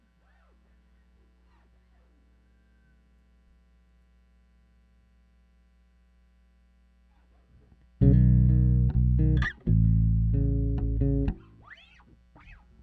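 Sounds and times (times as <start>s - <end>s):
bass takes: 8.0s - 11.9s.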